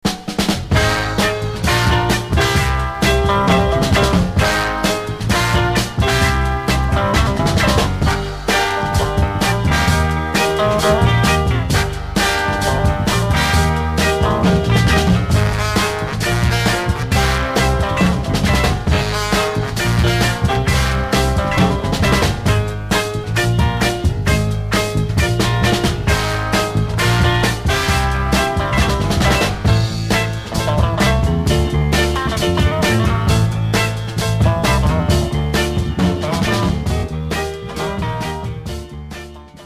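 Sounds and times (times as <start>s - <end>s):
instrumental music: 0.0s - 39.6s.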